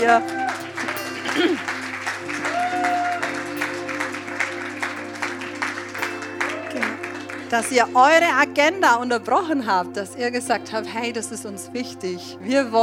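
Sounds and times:
speech: 0:00.0 - 0:00.4, 0:01.3 - 0:01.8, 0:07.5 - 0:12.8
audience applause: 0:00.0 - 0:07.8.

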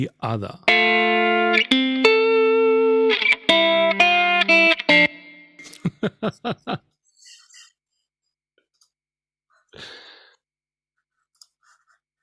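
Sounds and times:
speech: 0:00.0 - 0:01.0, 0:06.0 - 0:06.9
distorted electric guitar through profiled amplifier stack: 0:00.6 - 0:05.8
laughter: 0:05.6 - 0:07.6.

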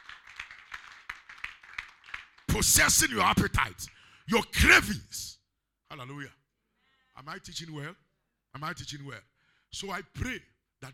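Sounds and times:
audience clapping hands: 0:00.0 - 0:03.2
speech: 0:02.6 - 0:05.3, 0:05.9 - 0:06.4, 0:07.2 - 0:10.9.

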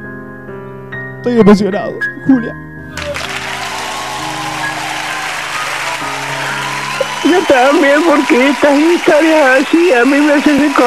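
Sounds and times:
speech: 0:01.2 - 0:03.0, 0:07.2 - 0:10.8
audience applause: 0:03.0 - 0:10.8.

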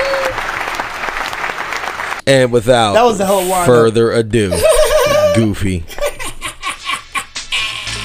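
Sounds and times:
applause: 0:00.0 - 0:02.2
speech: 0:02.3 - 0:04.7, 0:05.4 - 0:06.0
laughter: 0:04.5 - 0:07.7.

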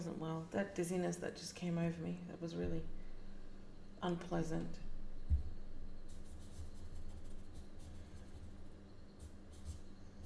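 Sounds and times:
speech: 0:00.0 - 0:03.0, 0:04.0 - 0:05.4
pencil sketching and doodling on paper: 0:06.1 - 0:08.6, 0:09.2 - 0:10.2.

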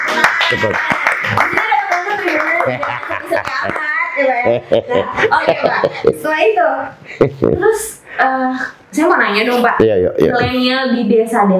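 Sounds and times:
hand clapping: 0:00.0 - 0:04.3
laughter: 0:00.1 - 0:01.7, 0:02.4 - 0:06.4, 0:07.2 - 0:07.8
speech: 0:00.5 - 0:11.5.

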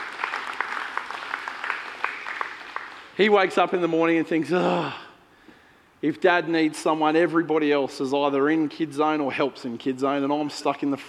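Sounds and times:
church audience clapping welcoming the speaker's son to the stage: 0:00.0 - 0:03.4
speech: 0:03.2 - 0:05.0, 0:06.0 - 0:11.0.

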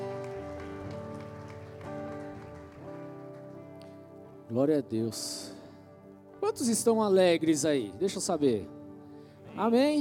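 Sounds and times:
audience applause: 0:00.0 - 0:03.8
sustained keyboard chords: 0:00.0 - 0:10.0
speech: 0:04.5 - 0:05.6, 0:06.4 - 0:08.8, 0:09.6 - 0:10.0.

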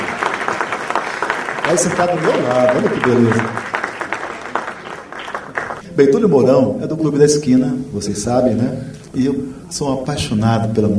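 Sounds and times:
audience applause: 0:00.0 - 0:06.5
speech: 0:01.7 - 0:03.7, 0:06.0 - 0:10.9.

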